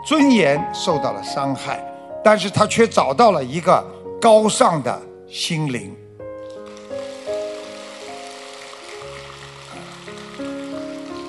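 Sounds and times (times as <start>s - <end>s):
speech: 0.0s - 6.0s
audience applause: 6.7s - 11.2s.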